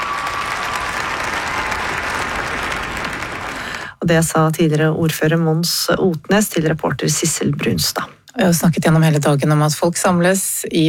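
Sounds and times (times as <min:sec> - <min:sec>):
crowd applause at statue unveiling: 0:00.0 - 0:04.0
speech: 0:04.0 - 0:10.8.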